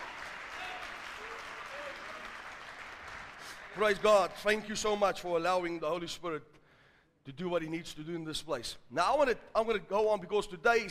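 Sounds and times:
church congregation clapping to welcome a guest speaker at a Pentecost service: 0.0 - 5.0
speech: 3.8 - 6.6, 7.2 - 10.8.

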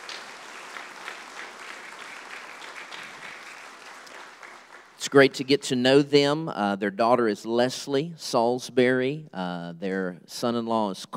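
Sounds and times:
audience applause: 0.0 - 5.1
speech: 5.1 - 11.1.

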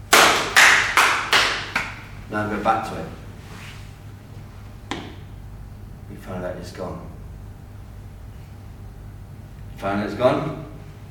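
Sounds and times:
people clapping their hands: 0.0 - 2.1
speech: 2.3 - 3.2, 6.2 - 7.1, 9.8 - 10.7.

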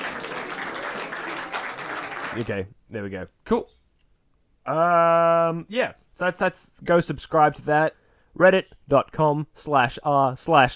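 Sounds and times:
crowd clapping sound effect: 0.0 - 2.6
speech: 2.3 - 3.8, 4.7 - 10.7.

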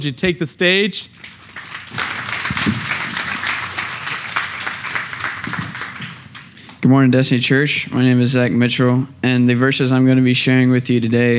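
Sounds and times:
speech: 0.0 - 1.4, 6.9 - 11.3
audience applause: 1.2 - 6.8.

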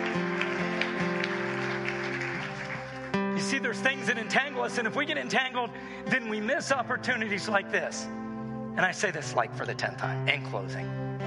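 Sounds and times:
audience applause: 0.0 - 3.4
speech: 3.5 - 8.2, 8.8 - 11.1.

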